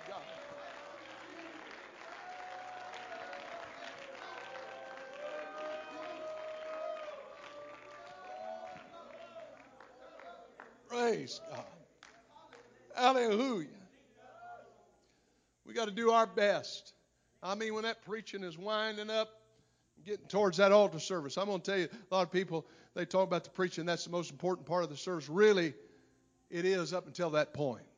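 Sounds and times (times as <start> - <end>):
audience clapping hands: 0.0 - 13.2
speech: 11.1 - 11.8, 13.0 - 13.8, 15.8 - 19.4, 20.0 - 25.8, 26.5 - 27.9.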